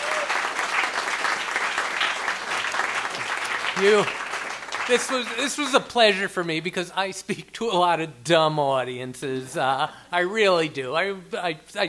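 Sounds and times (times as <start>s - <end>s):
audience applause: 0.0s - 5.6s
speech: 3.8s - 4.2s, 4.9s - 11.8s.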